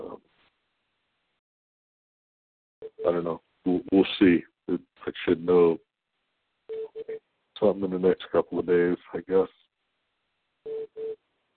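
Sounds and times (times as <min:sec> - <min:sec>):
speech: 0:03.0 - 0:05.9, 0:07.0 - 0:09.6
beeping tone on the line: 0:10.7 - 0:11.2.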